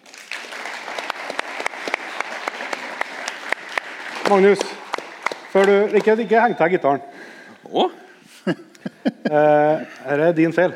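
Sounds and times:
audience applause: 0:00.0 - 0:06.6
speech: 0:04.3 - 0:04.8, 0:05.5 - 0:08.6, 0:09.3 - 0:10.7
laughter: 0:08.3 - 0:10.0.

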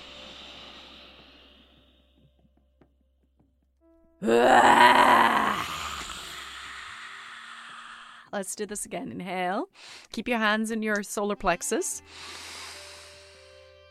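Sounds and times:
speech: 0:04.2 - 0:04.9, 0:08.4 - 0:12.6
person roaring like a lion as a breathing exercise: 0:04.2 - 0:08.2.

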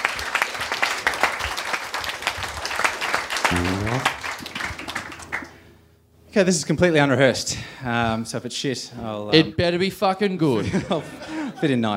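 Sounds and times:
live audience applause: 0:00.0 - 0:05.7
laughter: 0:03.5 - 0:04.1, 0:10.4 - 0:11.9
person cheering: 0:03.5 - 0:04.1
speech: 0:06.4 - 0:11.9.

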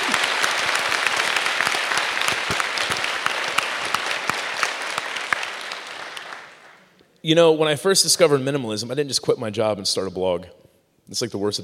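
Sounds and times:
audience clapping: 0:00.0 - 0:07.0
speech: 0:07.2 - 0:11.6.

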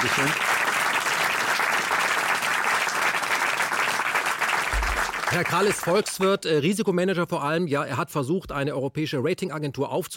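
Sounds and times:
speech: 0:00.0 - 0:00.6, 0:05.3 - 0:10.1
audience applause: 0:00.0 - 0:06.4.

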